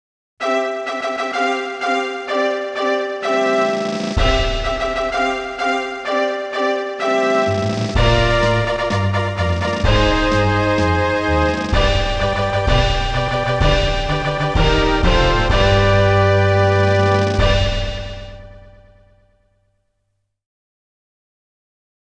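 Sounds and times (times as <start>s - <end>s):
special race fanfare: 0.4s - 19.2s.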